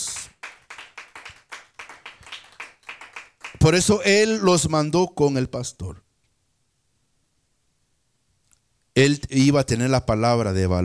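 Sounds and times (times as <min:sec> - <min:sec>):
audience clapping: 0:00.0 - 0:04.0
speech: 0:03.6 - 0:06.0, 0:09.0 - 0:10.8.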